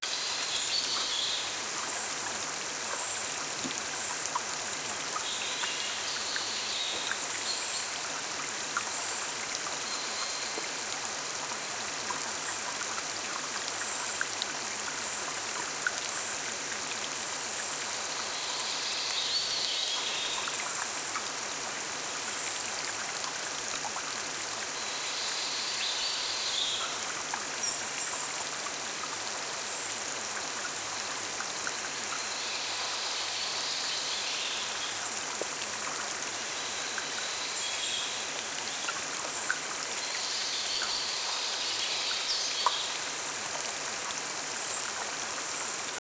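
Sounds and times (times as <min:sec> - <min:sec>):
waterfall: 0:00.0 - 0:46.0.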